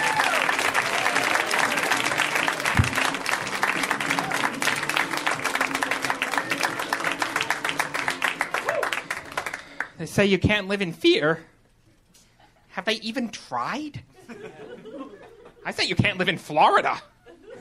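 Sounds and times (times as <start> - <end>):
audience applause welcoming a comedian at a stand-up comedy show: 0.0 - 10.0
speech: 10.0 - 11.5, 12.8 - 17.1
laughter: 14.1 - 15.7, 16.9 - 17.6.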